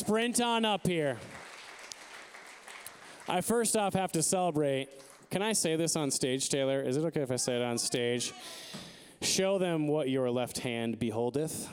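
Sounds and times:
crowd applause: 0.0 - 5.8
speech: 0.1 - 1.3, 3.3 - 11.7.

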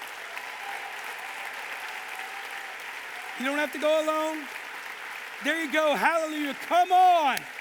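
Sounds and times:
audience cheering: 0.0 - 7.6
speech: 3.4 - 4.6, 5.4 - 7.6.

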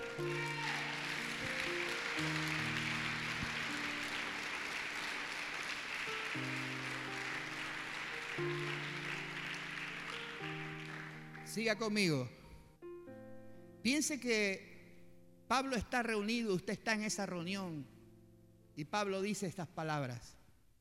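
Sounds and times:
loud applause: 0.0 - 11.5
speech: 0.2 - 0.8, 11.6 - 12.4, 13.8 - 14.7, 15.5 - 18.0, 18.8 - 20.4.

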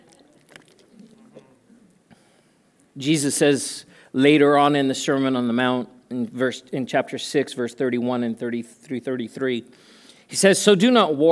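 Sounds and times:
person drinking water: 0.0 - 2.9
speech: 3.0 - 11.3.

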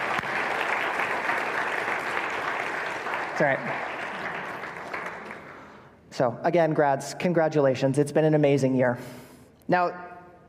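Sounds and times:
audience applause for graduates: 0.0 - 5.7
speech: 3.4 - 4.0, 6.2 - 10.0.

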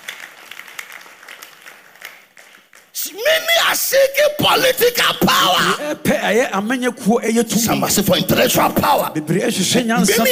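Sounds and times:
crowd clapping: 0.0 - 3.3
speech: 3.1 - 10.2.

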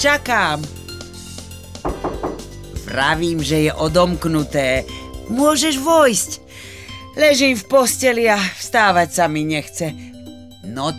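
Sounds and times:
speech: 0.0 - 0.8, 2.8 - 10.1, 10.7 - 10.9
knocking on a wooden door: 1.9 - 2.5.

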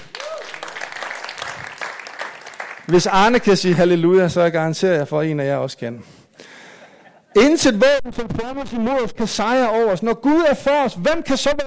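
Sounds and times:
audience applauding: 0.0 - 3.9
speech: 2.9 - 6.2, 7.4 - 11.6.

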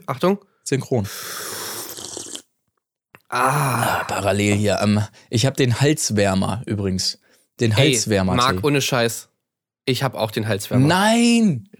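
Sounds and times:
speech: 0.0 - 1.6, 3.3 - 11.7
slurping tea: 1.1 - 2.5.

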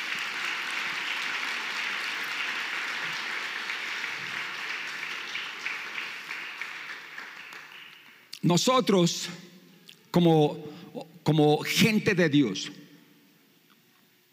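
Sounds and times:
large crowd applauding: 0.0 - 8.4
speech: 8.4 - 9.5, 10.1 - 12.8.

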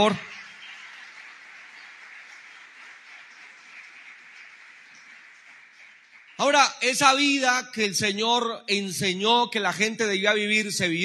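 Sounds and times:
speech: 0.0 - 0.3, 6.4 - 11.0
audience applause: 0.0 - 6.9.

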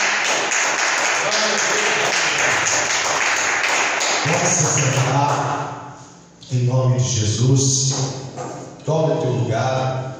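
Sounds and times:
large crowd applauding loudly: 0.0 - 5.5
speech: 4.2 - 5.8, 6.5 - 10.1.

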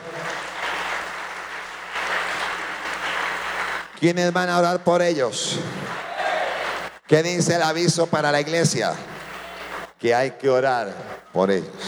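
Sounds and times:
church audience applauding: 0.0 - 4.1, 5.8 - 7.0, 9.1 - 9.9
speech: 4.0 - 5.8, 7.1 - 9.2, 10.0 - 11.8.

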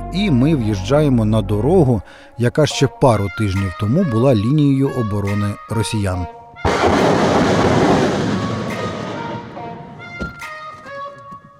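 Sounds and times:
speech: 0.1 - 8.0
Grad rocket launchers firing: 6.7 - 10.2.

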